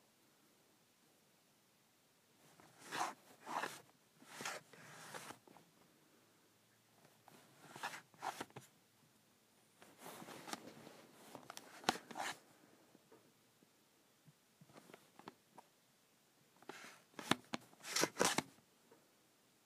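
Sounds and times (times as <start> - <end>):
calculator cover sliding on and off: 2.6 - 5.4, 7.3 - 8.7, 9.9 - 12.4, 16.6 - 18.5.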